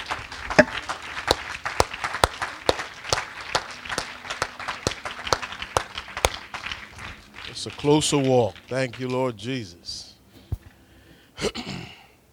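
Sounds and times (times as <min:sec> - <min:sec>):
audience hand clapping: 0:00.0 - 0:09.1
speech: 0:07.6 - 0:10.0.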